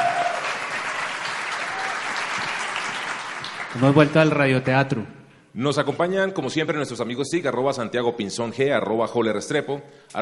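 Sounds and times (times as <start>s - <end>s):
audience applause: 0.0s - 4.6s
speech: 3.8s - 10.1s.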